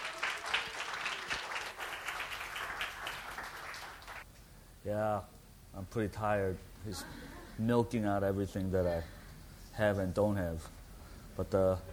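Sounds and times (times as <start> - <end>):
audience applause welcoming a pastor at a church gathering: 0.0 - 4.2
speech: 4.8 - 9.2, 9.8 - 10.8, 11.4 - 11.9.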